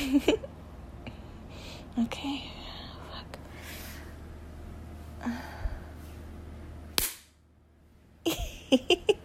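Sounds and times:
speech: 0.1 - 0.5, 2.0 - 2.6, 8.7 - 9.1
toy slapped between thighs: 7.0 - 7.4.

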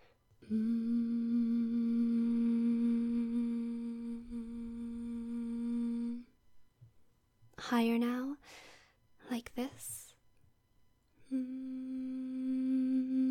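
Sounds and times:
speech: 0.4 - 0.9, 7.7 - 8.6, 9.4 - 10.1
person humming: 0.4 - 6.3, 11.2 - 13.2.

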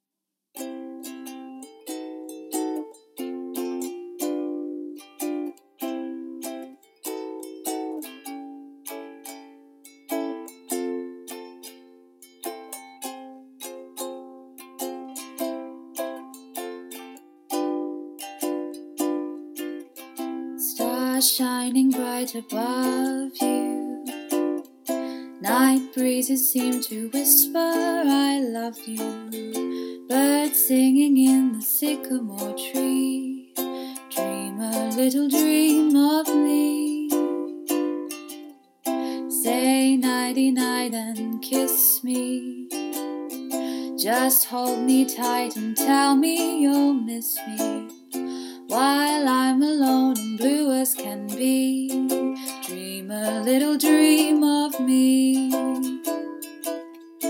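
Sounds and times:
ukulele cover in F: 0.6 - 57.2.

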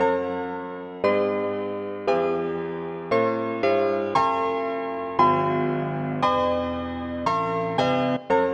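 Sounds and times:
piano: 0.0 - 8.5.

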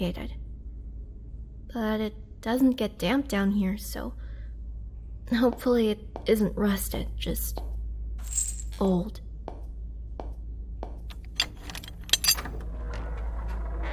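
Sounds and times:
speech: 0.0 - 0.4, 1.7 - 4.2, 5.3 - 9.2
old key turning in a door lock: 11.1 - 13.8.

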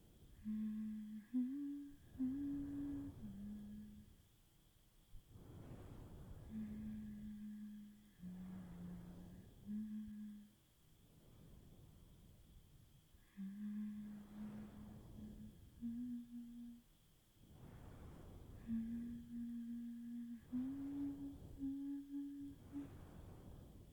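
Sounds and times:
person humming: 0.4 - 4.1, 6.5 - 10.5, 13.3 - 16.8, 18.6 - 22.9.

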